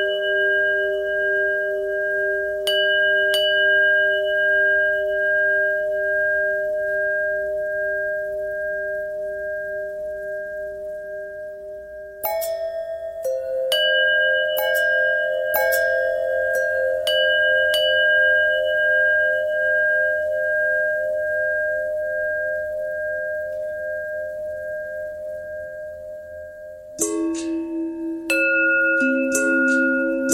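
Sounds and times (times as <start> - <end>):
long pentatonic bell melody: 0.0 - 30.3.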